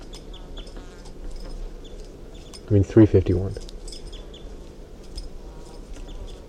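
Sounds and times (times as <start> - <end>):
captive crossbill vocalizing: 0.0 - 1.0, 1.8 - 2.7, 3.9 - 4.6, 5.8 - 6.4
low rumbling noise: 0.0 - 6.4
speech: 2.7 - 3.7.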